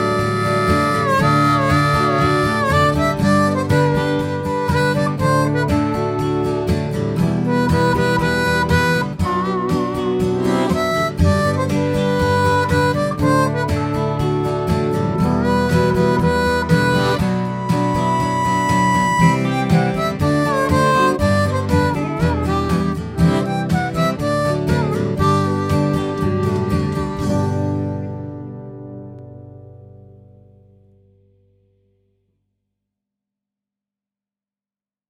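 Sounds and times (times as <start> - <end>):
harp: 0.0 - 28.6.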